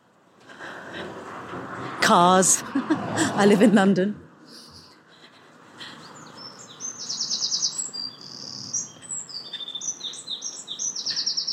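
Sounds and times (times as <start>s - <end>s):
speech: 2.1s - 4.2s
wren singing: 5.9s - 11.5s.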